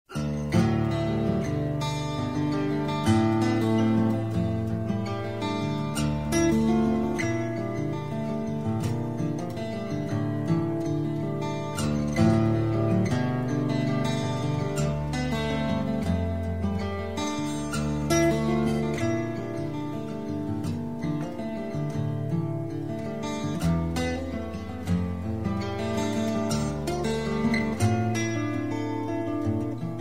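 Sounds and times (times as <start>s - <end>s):
acoustic music: 0.1s - 29.9s.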